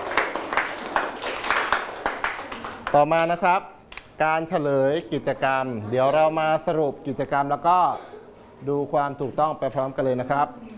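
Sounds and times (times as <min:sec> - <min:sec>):
group applauding themselves: 0:00.0 - 0:03.4
speech: 0:02.9 - 0:10.7.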